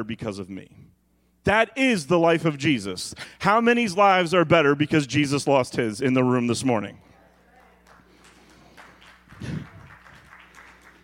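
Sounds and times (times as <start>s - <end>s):
speech: 0.0s - 0.8s, 1.4s - 7.1s
quiet audience applause: 7.2s - 11.0s.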